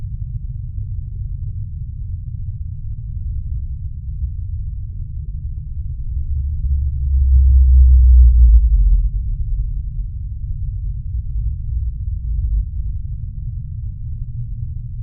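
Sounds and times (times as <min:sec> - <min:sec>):
blue whale D-call low moan: 0:06.2 - 0:10.3.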